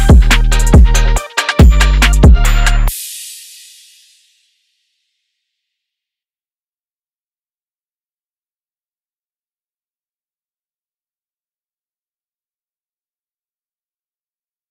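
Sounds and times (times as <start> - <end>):
phonk remix: 0.0 - 4.1.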